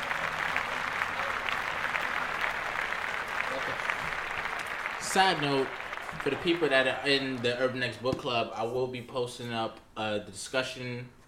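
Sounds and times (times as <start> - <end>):
applause: 0.0 - 7.8
speech: 5.2 - 11.2.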